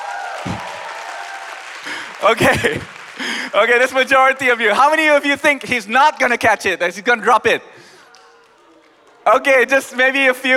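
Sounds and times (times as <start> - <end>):
audience clapping hands: 0.0 - 5.0, 8.0 - 10.5
speech: 2.2 - 7.8, 9.3 - 10.5.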